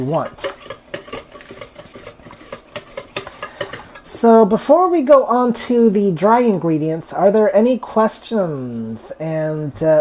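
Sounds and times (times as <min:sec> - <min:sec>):
speech: 0:00.0 - 0:00.5, 0:04.2 - 0:09.9
fork whisking eggs in a bowl: 0:00.0 - 0:04.2.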